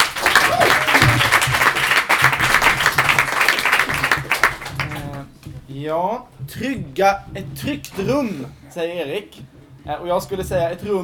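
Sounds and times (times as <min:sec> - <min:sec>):
audience applause: 0:00.0 - 0:05.3
speech: 0:05.8 - 0:11.0.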